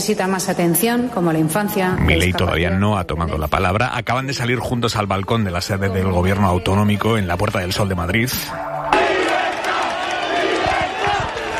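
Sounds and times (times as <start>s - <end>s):
speech: 0.0s - 8.9s
crowd chanting outside government building: 8.8s - 11.5s.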